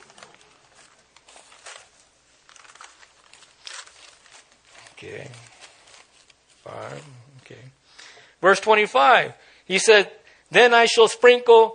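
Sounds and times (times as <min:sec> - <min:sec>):
papers rustling and shuffling: 0:00.0 - 0:07.6
speech: 0:05.0 - 0:05.5, 0:06.6 - 0:07.8, 0:08.4 - 0:11.7.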